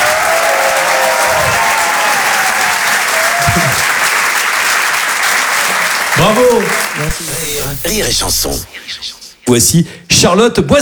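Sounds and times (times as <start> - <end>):
audience applause: 0.0 - 8.5
speech: 6.3 - 10.7.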